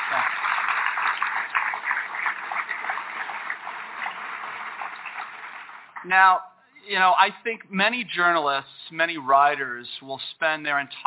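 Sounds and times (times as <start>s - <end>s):
audience applause: 0.0s - 6.0s
speech: 6.0s - 11.0s.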